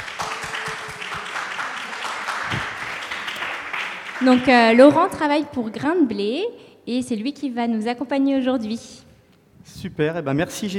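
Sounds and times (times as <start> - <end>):
audience applause: 0.0 - 5.1
speech: 4.2 - 9.0, 9.8 - 10.7.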